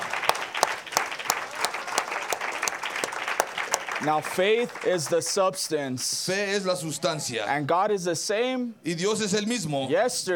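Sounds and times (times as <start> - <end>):
audience applause: 0.0 - 5.6
speech: 4.0 - 10.3.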